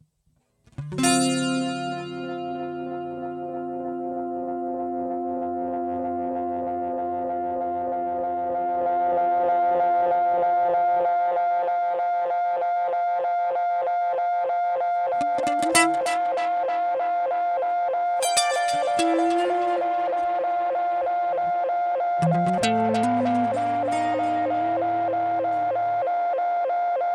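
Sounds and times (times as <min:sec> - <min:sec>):
guitar through Space Echo effect: 0:00.5 - 0:27.1.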